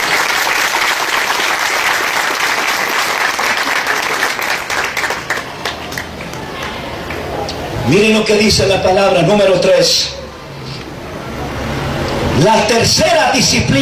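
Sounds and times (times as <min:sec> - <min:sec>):
audience applauding: 0:00.0 - 0:07.3
speech: 0:07.9 - 0:10.2, 0:12.4 - 0:13.7.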